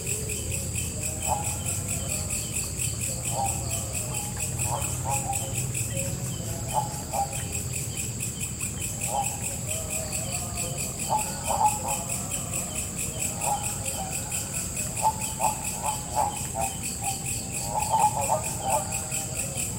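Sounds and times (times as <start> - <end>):
frog calls: 0.0 - 19.7.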